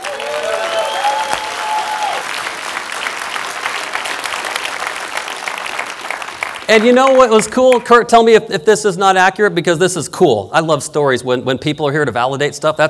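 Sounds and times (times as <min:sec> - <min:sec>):
crowd applause: 0:00.0 - 0:07.9
whoops and whistles: 0:00.3 - 0:02.2
speech: 0:06.7 - 0:12.8.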